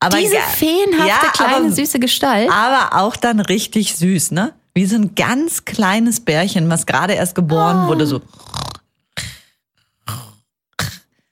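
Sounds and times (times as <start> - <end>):
speech: 0.0 - 8.7
sleeping woman snoring: 10.0 - 10.5.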